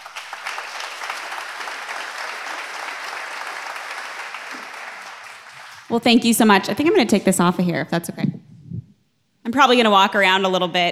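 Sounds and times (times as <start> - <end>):
audience applause: 0.0 - 5.9
speech: 5.9 - 8.5, 9.6 - 10.9.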